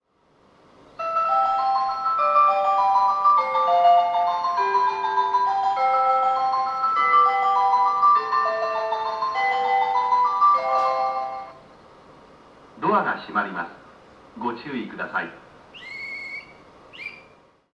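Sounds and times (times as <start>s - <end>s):
melody: 1.0s - 11.6s.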